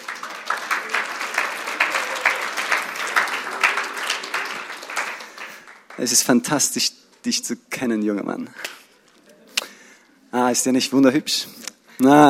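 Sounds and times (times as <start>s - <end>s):
audience applause: 0.0s - 6.3s
speech: 6.0s - 8.7s, 10.4s - 12.2s.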